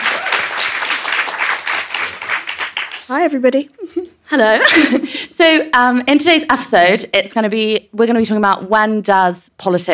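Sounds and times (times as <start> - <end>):
audience round of applause: 0.0 - 3.1
speech: 3.1 - 9.9.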